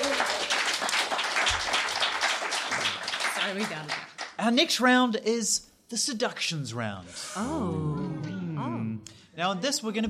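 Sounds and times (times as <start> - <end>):
crowd applauding: 0.0 - 4.4
speech: 3.5 - 10.0.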